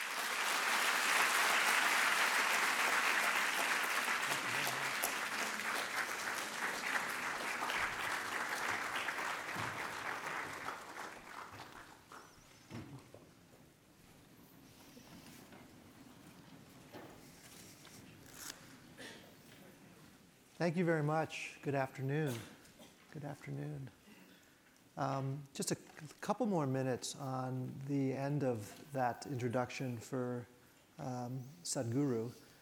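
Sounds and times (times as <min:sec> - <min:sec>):
audience applause welcoming speakers to a Stanford GSB panel: 0:00.0 - 0:12.4
speech: 0:20.6 - 0:24.0, 0:25.0 - 0:32.4.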